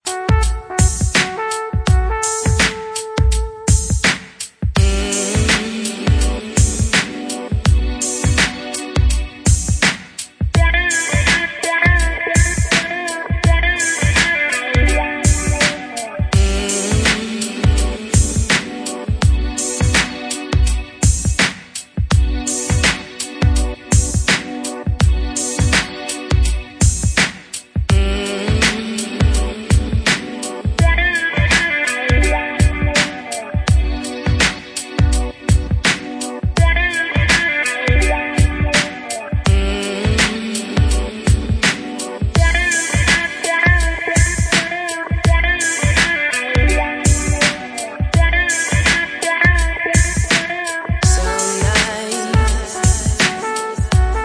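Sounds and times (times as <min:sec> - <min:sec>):
romantic music: 0:00.0 - 0:54.2.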